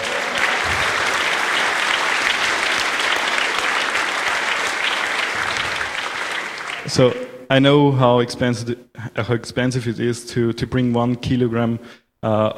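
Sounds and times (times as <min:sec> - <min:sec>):
audience applause: 0:00.0 - 0:07.3
speech: 0:06.9 - 0:12.5.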